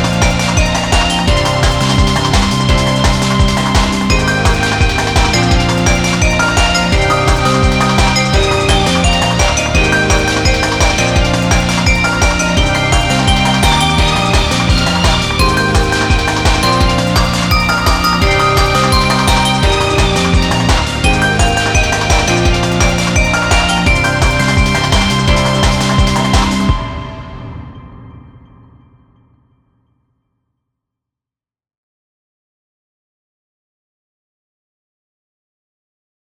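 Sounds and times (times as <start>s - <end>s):
ambient drum and bass: 0.0s - 27.6s.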